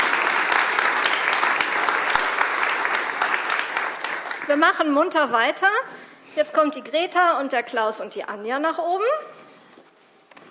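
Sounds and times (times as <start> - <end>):
audience applause: 0.0 - 4.6
speech: 4.5 - 9.4.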